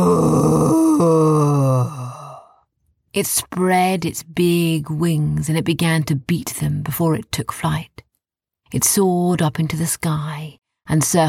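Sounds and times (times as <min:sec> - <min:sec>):
voice imitating a dragon's roar: 0:00.0 - 0:02.2
speech: 0:03.2 - 0:08.1, 0:08.7 - 0:11.2.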